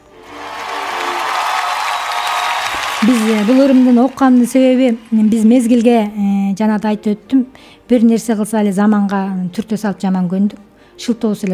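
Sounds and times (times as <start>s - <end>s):
audience applause: 0.0s - 5.9s
speech: 3.1s - 11.5s.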